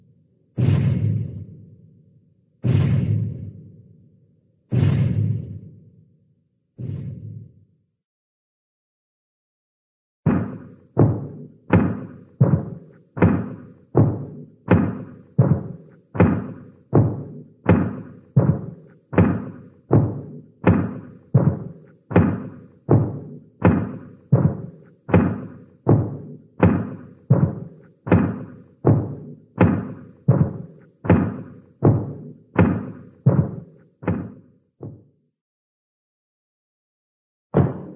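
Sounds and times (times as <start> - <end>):
cartoon giant footsteps: 0.6 - 1.4, 2.6 - 3.6, 4.7 - 5.6, 10.3 - 35.0, 37.6 - 37.9.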